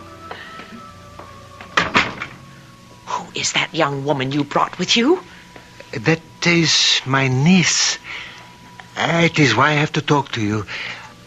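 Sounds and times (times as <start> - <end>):
door being opened: 0.3 - 2.8
speech: 3.4 - 5.3, 5.9 - 8.3, 9.0 - 11.2.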